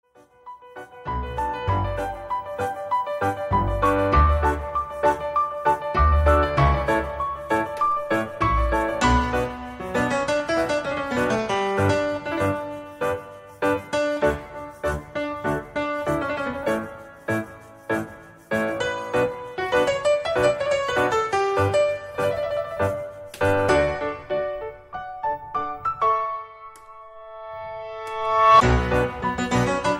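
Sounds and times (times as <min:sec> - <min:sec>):
piano cover: 0:00.2 - 0:29.9.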